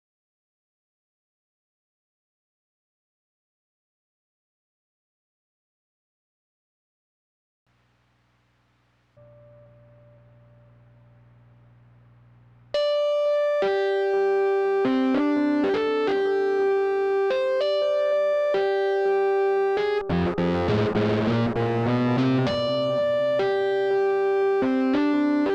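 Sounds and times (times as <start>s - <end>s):
keyboard playing: 12.8s - 25.5s.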